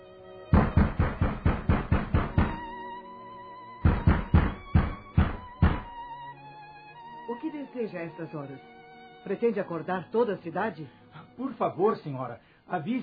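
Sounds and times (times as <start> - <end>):
hurried loud knocking on a door: 0.5 - 2.7, 3.8 - 6.0
speech: 7.4 - 13.0.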